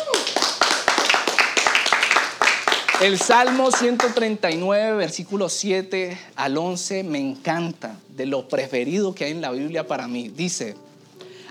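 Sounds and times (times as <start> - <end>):
audience clapping: 0.0 - 4.7
speech: 3.0 - 10.9.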